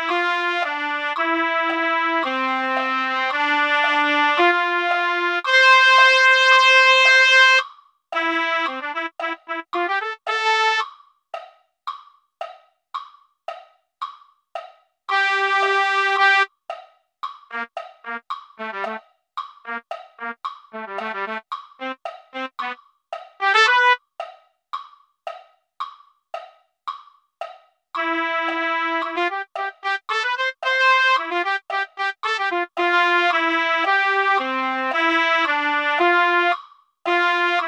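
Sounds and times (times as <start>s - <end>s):
trumpet: 0.0s - 7.6s, 8.2s - 10.9s, 15.1s - 16.5s, 17.5s - 19.0s, 19.6s - 22.8s, 23.4s - 24.0s, 28.0s - 37.6s.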